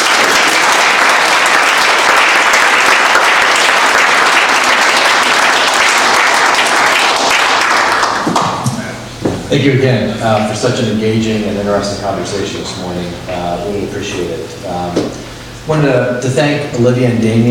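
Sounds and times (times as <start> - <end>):
crowd applauding: 0.0 - 8.9
speech: 9.5 - 17.4.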